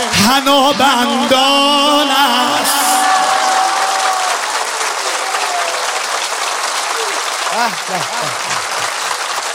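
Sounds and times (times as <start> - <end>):
person's voice: 0.0 - 3.3
crowd clapping at a celebration of Imam Ali's birth: 0.0 - 9.5
speech: 0.3 - 2.4, 7.6 - 8.4
laughter: 7.0 - 9.2.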